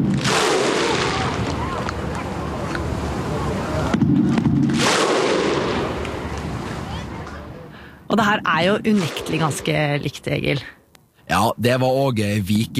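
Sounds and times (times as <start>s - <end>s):
roar of several thousand Icelandic football fans: 0.1s - 6.1s
speech: 8.2s - 12.7s.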